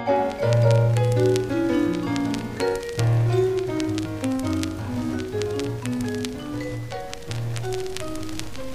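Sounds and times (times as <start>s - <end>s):
vinyl record crackle: 0.1s - 8.7s.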